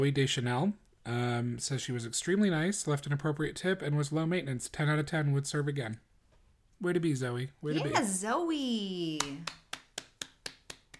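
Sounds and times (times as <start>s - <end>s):
speech: 0.0s - 6.1s, 6.8s - 9.6s
hands clapping: 9.1s - 10.9s.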